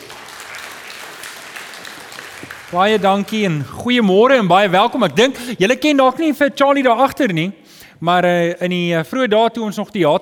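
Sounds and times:
audience applauding the band: 0.0 - 3.5
speech: 2.4 - 10.2.

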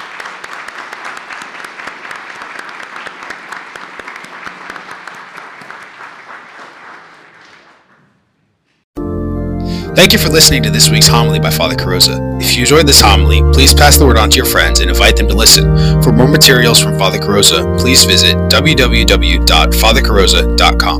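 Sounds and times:
audience applause: 0.0 - 8.1
speech: 10.0 - 20.9.

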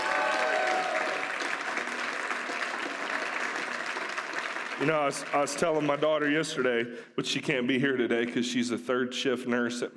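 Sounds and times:
audience applause: 0.0 - 6.0
speech: 4.8 - 9.9.

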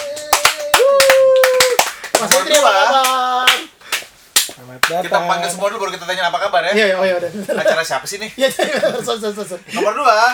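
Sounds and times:
scattered applause from a small group: 0.0 - 4.9
speech: 2.2 - 3.5, 4.8 - 10.3.

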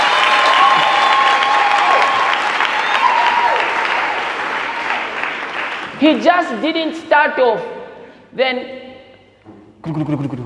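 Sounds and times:
audience clapping and applause: 0.0 - 6.0
speech: 6.0 - 8.8, 9.8 - 10.4.

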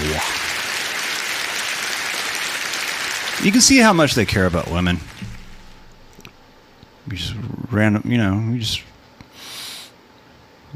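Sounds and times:
audience clapping: 0.0 - 6.4
speech: 3.4 - 5.2, 7.1 - 8.9.

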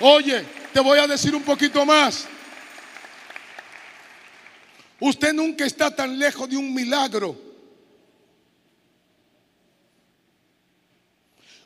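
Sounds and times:
speech: 0.0 - 2.4, 5.0 - 7.4
crowd applauding: 0.0 - 5.0.

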